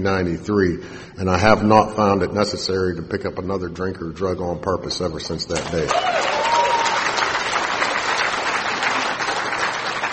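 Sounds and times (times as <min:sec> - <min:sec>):
speech: 0:00.0 - 0:06.4
crowd applauding: 0:05.8 - 0:10.1.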